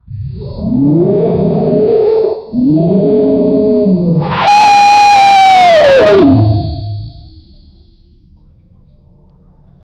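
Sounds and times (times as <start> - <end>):
T. rex roaring: 0.0 - 7.4.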